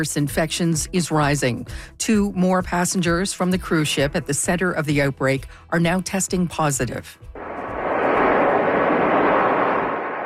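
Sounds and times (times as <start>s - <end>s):
speech: 0.0s - 7.4s
airplane landing: 7.4s - 10.2s.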